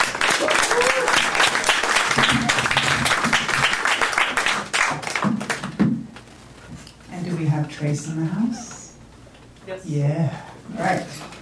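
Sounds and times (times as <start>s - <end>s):
audience applause at a poetry reading: 0.0s - 5.8s
speech: 7.8s - 8.7s, 9.8s - 11.0s.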